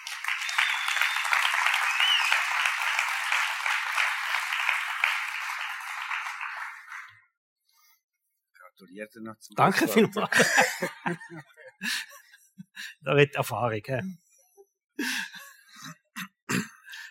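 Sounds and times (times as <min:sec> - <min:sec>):
audience applause: 0:00.0 - 0:07.2
speech: 0:08.9 - 0:12.2, 0:12.8 - 0:14.2
laughter: 0:09.6 - 0:12.9.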